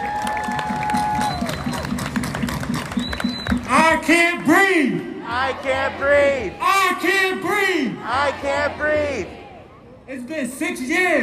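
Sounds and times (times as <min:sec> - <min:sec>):
crowd applause: 0:00.0 - 0:03.8
speech: 0:03.8 - 0:09.4, 0:10.1 - 0:11.2.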